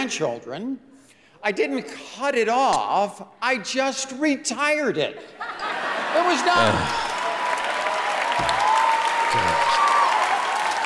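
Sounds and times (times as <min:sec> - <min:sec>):
speech: 0:00.0 - 0:07.0
audience applause: 0:05.9 - 0:10.8.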